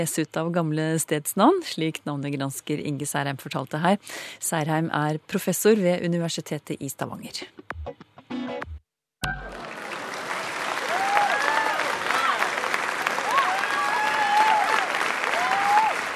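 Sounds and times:
speech: 0:00.0 - 0:08.0
applause: 0:09.3 - 0:16.1.

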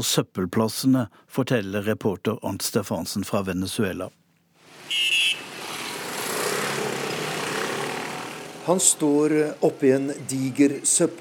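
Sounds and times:
speech: 0:00.0 - 0:04.2, 0:08.7 - 0:11.1
street traffic passing: 0:04.6 - 0:11.1.

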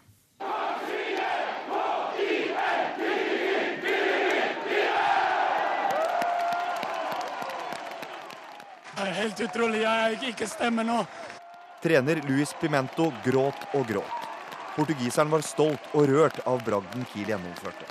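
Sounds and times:
football fans chanting and cheering a cup semifinal win: 0:00.4 - 0:17.9
shouts and whoops: 0:05.7 - 0:15.7
speech: 0:09.2 - 0:14.2, 0:14.8 - 0:17.9.

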